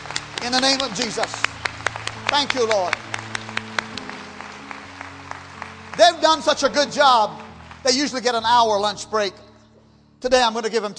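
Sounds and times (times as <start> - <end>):
audience applause: 0.0 - 8.5
speech: 0.4 - 1.5, 2.2 - 3.0, 6.0 - 9.4, 10.2 - 10.9.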